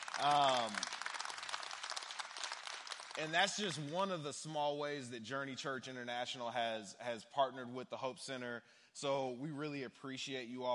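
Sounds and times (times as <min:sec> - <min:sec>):
audience hand clapping: 0:00.0 - 0:04.2
speech: 0:00.2 - 0:00.9, 0:03.2 - 0:10.7.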